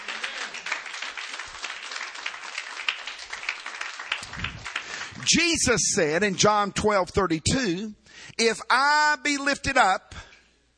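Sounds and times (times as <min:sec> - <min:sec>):
audience clapping hands: 0:00.0 - 0:05.8
speech: 0:05.3 - 0:10.1.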